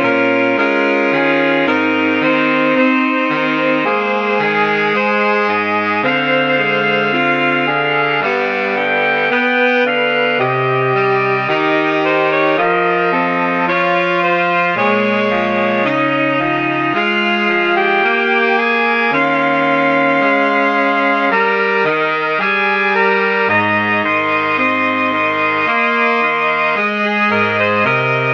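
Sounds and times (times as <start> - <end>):
saxophone quartet playing: 0.0 - 28.3.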